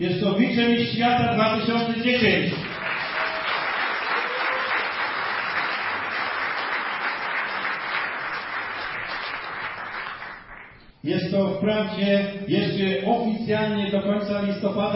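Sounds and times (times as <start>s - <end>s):
speech: 0.0s - 2.7s, 11.0s - 14.9s
audience applause: 2.5s - 10.8s.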